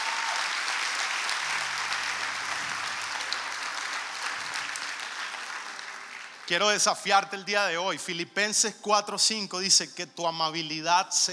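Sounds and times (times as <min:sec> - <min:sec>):
audience applause: 0:00.0 - 0:06.6
speech: 0:06.5 - 0:11.3.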